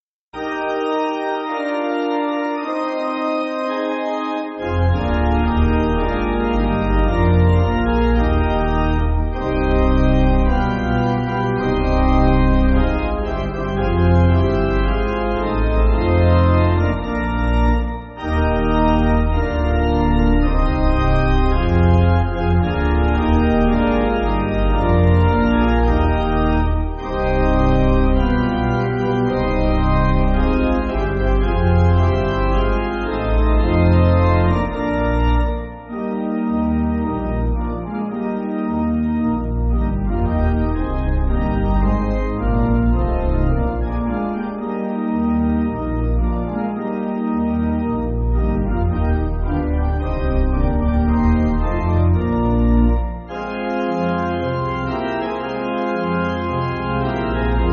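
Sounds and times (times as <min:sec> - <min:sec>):
pipe organ: 0:00.4 - 0:57.7.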